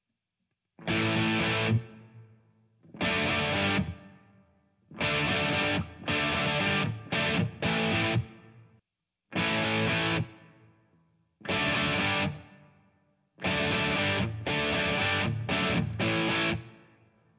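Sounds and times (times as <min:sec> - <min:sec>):
Fender Stratocaster electric guitar: 0:00.8 - 0:02.2, 0:02.9 - 0:04.3, 0:04.9 - 0:08.6, 0:09.3 - 0:10.7, 0:11.4 - 0:12.8, 0:13.4 - 0:17.0.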